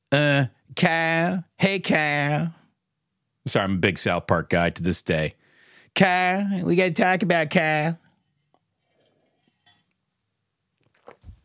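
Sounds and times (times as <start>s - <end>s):
speech: 0.1s - 2.6s, 3.4s - 5.4s, 6.0s - 8.0s
person taking a sip of a drink: 10.8s - 11.4s.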